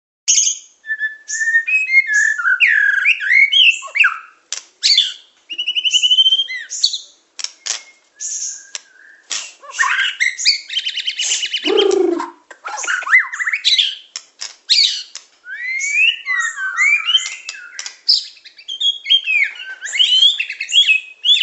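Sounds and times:
songbird chirps and trills: 0:00.3 - 0:21.4.

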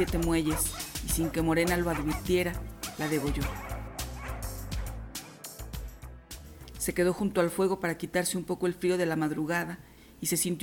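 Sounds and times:
speech: 0:00.0 - 0:03.7, 0:06.9 - 0:10.6
several dogs barking and yelping: 0:00.0 - 0:05.4
dogs whimpering: 0:00.4 - 0:05.0.

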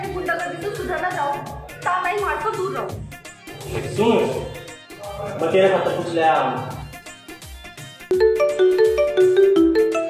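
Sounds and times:
speech: 0:00.9 - 0:04.6, 0:05.2 - 0:06.8
phone ringing with melodic bell-like ringtone: 0:08.1 - 0:10.0.

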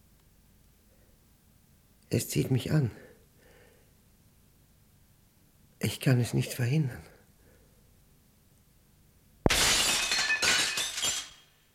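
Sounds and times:
speech: 0:02.1 - 0:03.1, 0:06.0 - 0:07.1
window pane shattering: 0:09.5 - 0:11.7.

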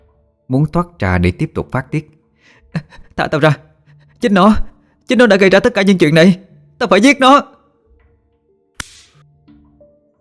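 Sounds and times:
speech: 0:00.5 - 0:07.5
slap across the face: 0:08.8 - 0:09.2.

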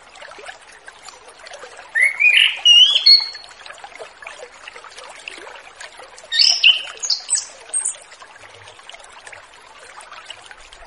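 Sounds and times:
Orange-headed thrush giving loud whistled phrases: 0:02.0 - 0:03.4, 0:06.4 - 0:07.9.

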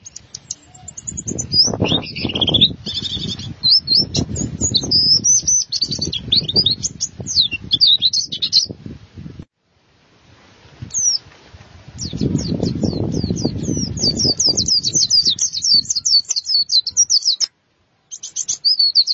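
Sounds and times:
white-eye twittering song: 0:00.0 - 0:08.8, 0:12.0 - 0:17.5, 0:18.1 - 0:19.1.

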